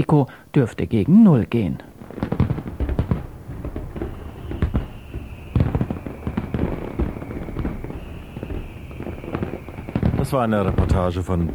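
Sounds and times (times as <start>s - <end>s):
speech: 0.0s - 1.9s, 10.3s - 11.5s
fireworks and firecrackers exploding: 1.8s - 11.5s
steady high whistle: 3.5s - 11.5s.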